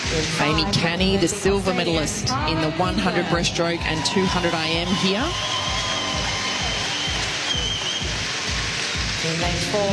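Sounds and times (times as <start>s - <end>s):
speech: 0.1s - 5.6s, 9.4s - 9.9s
crowd roaring at swimming pool: 3.4s - 8.4s.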